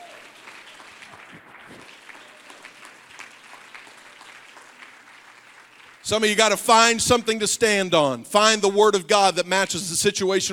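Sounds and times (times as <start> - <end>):
audience clapping hands: 0.0 - 8.2
speech: 6.1 - 10.5.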